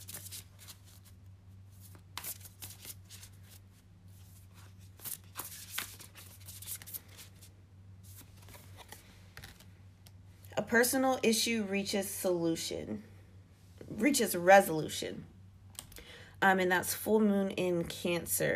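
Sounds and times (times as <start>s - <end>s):
moon oracle deck cards shuffled and drawn: 0.0s - 10.2s
speech: 10.7s - 13.1s, 14.0s - 15.3s, 16.4s - 18.5s.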